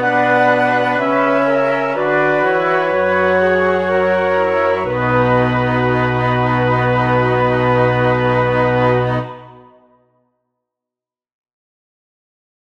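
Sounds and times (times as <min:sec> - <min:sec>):
flute orchestra playing all parts: 0:00.0 - 0:10.0.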